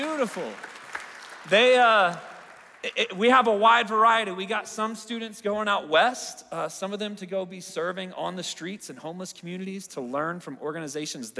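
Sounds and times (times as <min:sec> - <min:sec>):
speech: 0:00.0 - 0:00.7, 0:01.4 - 0:11.3
audience applause: 0:00.0 - 0:03.3.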